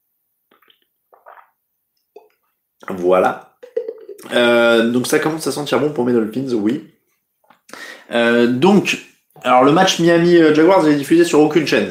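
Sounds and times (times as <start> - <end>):
person taking a small sip of water: 0.5 - 2.5
speech: 2.9 - 3.5, 4.3 - 6.9, 7.7 - 11.8.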